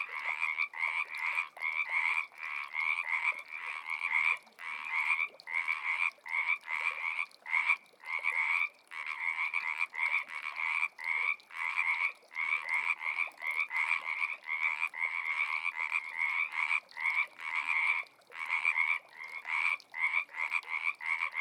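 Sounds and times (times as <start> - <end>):
frogs: 0.0 - 21.3.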